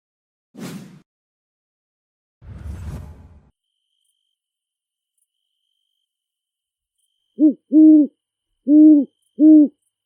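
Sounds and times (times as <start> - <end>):
great horned owl hooting in a big forest: 7.4 - 9.8.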